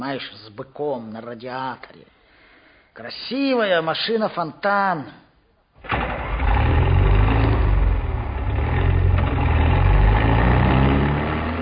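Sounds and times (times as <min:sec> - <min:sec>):
speech: 0:00.0 - 0:02.2, 0:03.0 - 0:05.2
six-cubic-metre excavator diesel engine starting and running in a quarry: 0:05.9 - 0:11.6.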